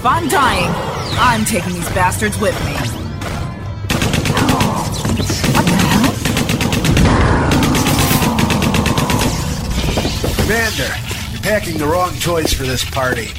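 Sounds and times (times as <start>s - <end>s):
speech: 0.0s - 3.0s, 10.5s - 13.3s
machine gun firing metal slugs: 3.2s - 9.5s.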